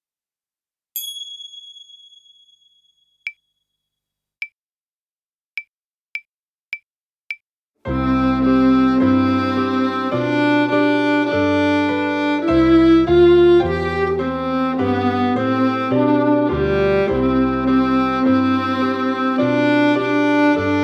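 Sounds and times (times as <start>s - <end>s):
alto playing French folk song: 7.9s - 20.8s.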